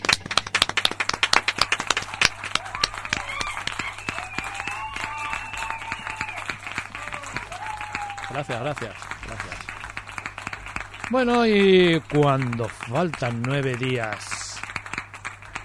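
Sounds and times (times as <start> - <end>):
hands clapping: 0.0 - 15.6
faint whistle-like cheering tones: 2.1 - 8.5
speech: 8.4 - 9.6, 11.1 - 14.3.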